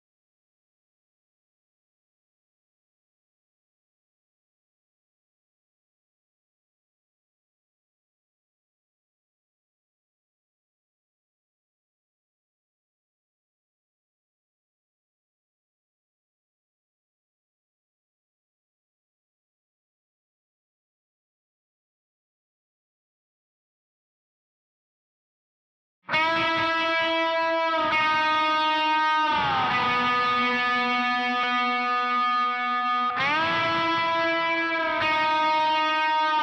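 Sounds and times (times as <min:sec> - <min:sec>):
bass guitar: 0:26.1 - 0:36.4.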